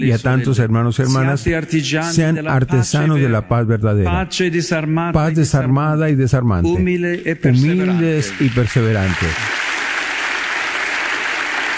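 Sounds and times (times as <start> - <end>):
speech: 0.0 - 9.7
audience ovation applause: 7.7 - 11.7.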